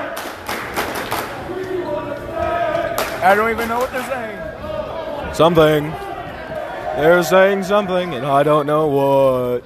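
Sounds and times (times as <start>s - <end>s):
audience clapping: 0.1s - 1.5s, 2.9s - 4.2s
speech: 3.2s - 4.4s, 5.3s - 6.0s, 6.9s - 9.6s.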